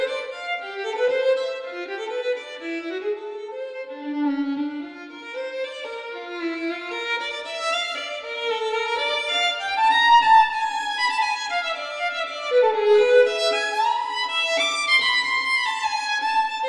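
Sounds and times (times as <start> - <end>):
solo violin piece: 0.0 - 16.6.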